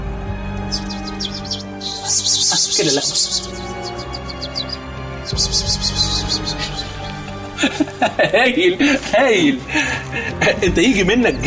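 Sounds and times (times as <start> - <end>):
person imitating a bird with short high chirps: 0.7 - 7.2
speech: 2.1 - 4.0, 5.3 - 6.5, 7.6 - 11.4
laughter: 6.5 - 11.4.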